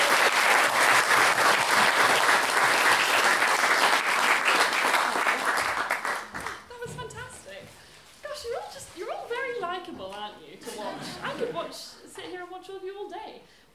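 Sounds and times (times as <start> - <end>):
audience applause: 0.0 - 6.7
laughter: 10.6 - 11.9.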